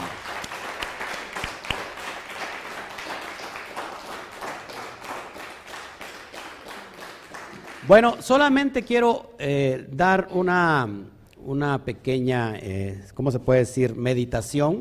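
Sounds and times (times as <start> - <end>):
loud applause: 0.0 - 8.2
speech: 7.9 - 14.7.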